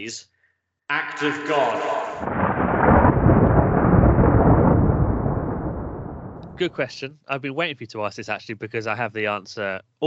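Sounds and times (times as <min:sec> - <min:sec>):
speech: 0:00.0 - 0:00.3, 0:00.9 - 0:02.4, 0:06.6 - 0:10.0
thunderclap sound effect: 0:01.2 - 0:06.9.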